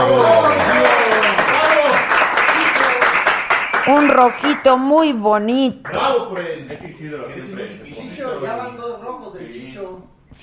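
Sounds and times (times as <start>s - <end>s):
applause: 0.0s - 5.1s, 5.8s - 6.5s
speech: 4.1s - 10.4s.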